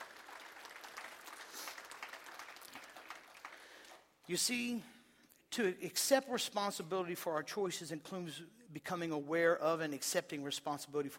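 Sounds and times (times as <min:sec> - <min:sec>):
audience hand clapping: 0:00.0 - 0:04.3
speech: 0:04.3 - 0:05.0, 0:05.6 - 0:11.1.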